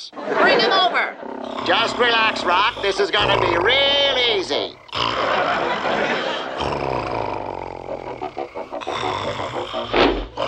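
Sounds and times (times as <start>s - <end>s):
speech: 0.0s - 4.6s
laughter: 0.0s - 6.9s, 7.9s - 10.4s
loud snoring: 1.1s - 10.4s.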